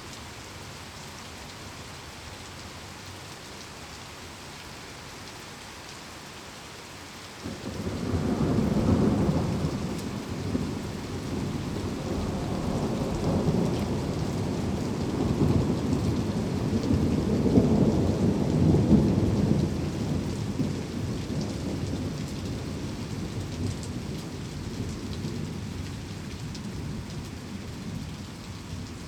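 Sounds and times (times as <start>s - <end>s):
calming rain: 0.0s - 29.0s
thunder: 7.7s - 22.2s.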